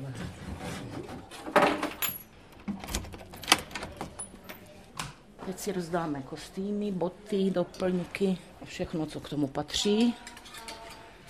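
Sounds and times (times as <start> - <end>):
keys jingling as they are pulled out: 1.9 - 4.7
door being unlocked and opened: 2.0 - 4.3
speech: 5.5 - 10.3.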